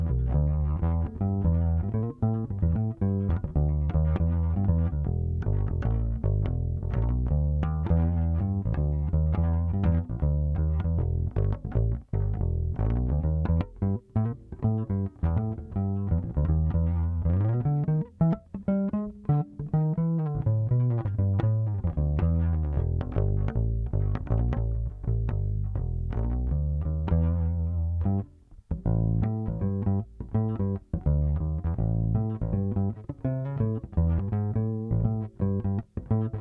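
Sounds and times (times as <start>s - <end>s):
bass guitar through a pickup: 0.0s - 36.3s.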